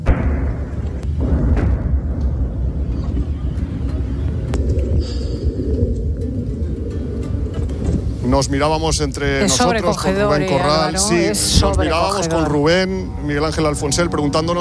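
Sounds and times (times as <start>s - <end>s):
distant bombing explosions: 0.0s - 8.2s, 11.3s - 14.5s
aircraft overhead: 2.4s - 14.5s
speech: 8.4s - 14.5s.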